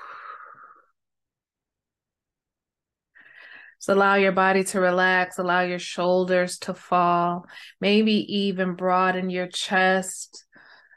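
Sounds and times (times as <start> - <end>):
deep exhale during guided relaxation breathing: 0.0 - 0.9
speech: 3.8 - 10.5.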